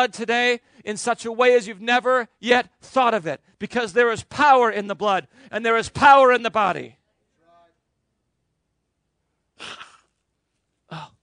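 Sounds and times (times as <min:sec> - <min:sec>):
speech: 0:00.0 - 0:07.0, 0:09.6 - 0:09.8
man blowing his nose: 0:09.6 - 0:10.2.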